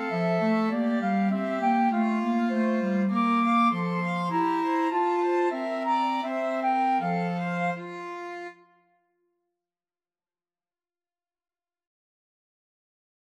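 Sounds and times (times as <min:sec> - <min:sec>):
flute: 0:00.0 - 0:08.8
violin: 0:00.0 - 0:08.8
clarinet: 0:00.0 - 0:09.0.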